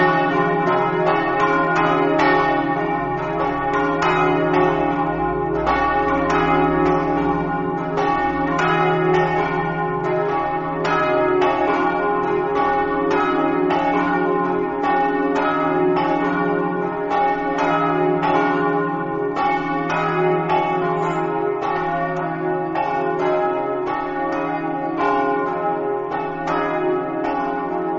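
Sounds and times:
church bells ringing in Mossa: 0.0 - 27.9.

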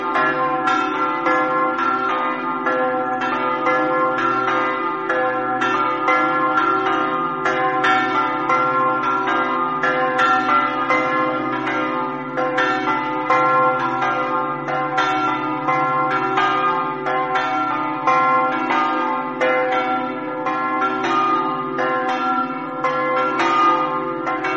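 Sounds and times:
bells ringing in Maiano: 0.0 - 24.5.

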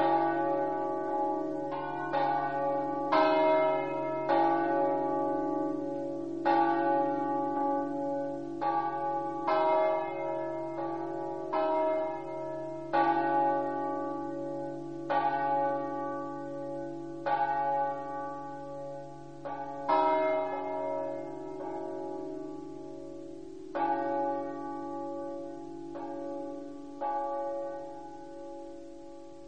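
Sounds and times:
bells ringing: 0.0 - 29.3.

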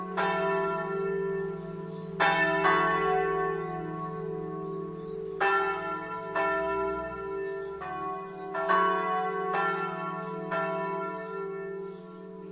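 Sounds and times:
bells ringing at sunset: 0.0 - 12.5.

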